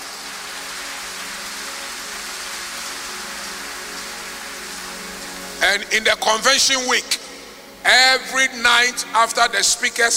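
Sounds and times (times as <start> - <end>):
audience clapping: 0.0 - 5.6
speech: 5.6 - 7.2, 7.8 - 10.1.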